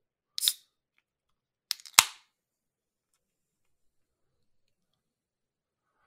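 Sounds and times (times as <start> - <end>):
carbonated drink can opening: 0.4 - 0.6, 1.7 - 2.2.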